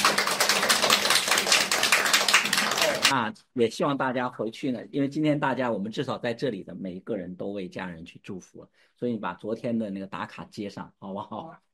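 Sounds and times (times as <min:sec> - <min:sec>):
audience applause: 0:00.0 - 0:03.1
speech: 0:03.1 - 0:11.7.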